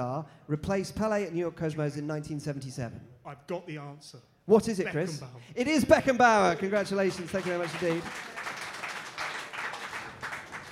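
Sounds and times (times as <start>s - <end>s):
speech: 0.0s - 8.5s
small group applause: 6.6s - 10.6s.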